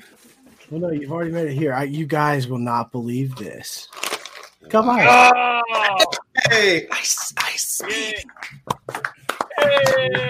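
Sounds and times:
speech: 0.7s - 4.0s, 4.6s - 8.6s
audience clapping: 7.9s - 10.2s.

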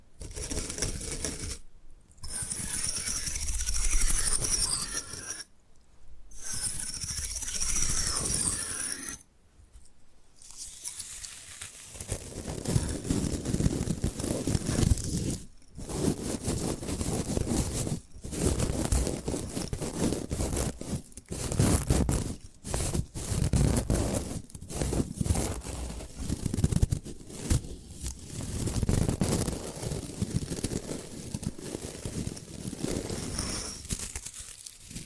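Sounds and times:
bamboo being scratched and brushed: 0.0s - 5.5s, 6.3s - 9.3s, 10.4s - 35.0s.

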